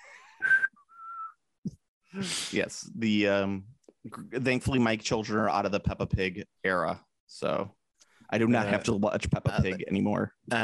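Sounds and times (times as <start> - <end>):
person whistling: 0.4 - 1.4
speech: 2.2 - 10.6.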